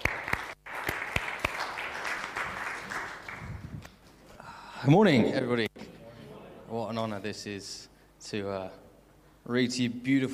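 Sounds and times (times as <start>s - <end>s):
church congregation applauding to welcome a Bible reader: 0.0s - 3.8s
speech: 4.8s - 5.7s, 6.9s - 8.8s, 9.5s - 10.3s.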